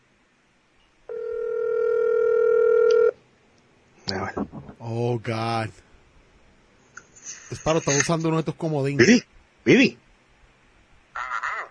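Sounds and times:
outgoing WhatsApp call ringing tone: 1.1 - 3.2
speech: 5.2 - 5.8, 7.5 - 10.0.

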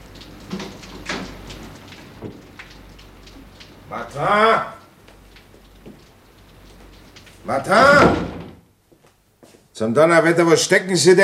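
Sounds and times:
speech: 3.9 - 4.8, 7.5 - 8.3, 9.8 - 11.2
office door being opened: 7.5 - 8.7.

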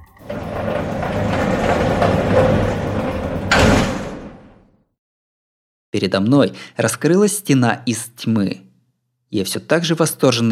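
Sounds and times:
heavy door forced sliding open sideways along its track: 0.2 - 4.6
speech: 6.0 - 8.7, 9.3 - 10.5.

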